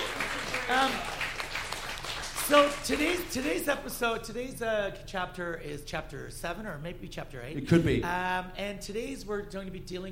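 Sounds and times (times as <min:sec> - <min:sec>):
voiced cheer: 0:00.0 - 0:01.4
applause: 0:00.0 - 0:03.6
speech: 0:00.7 - 0:01.1, 0:02.5 - 0:10.1.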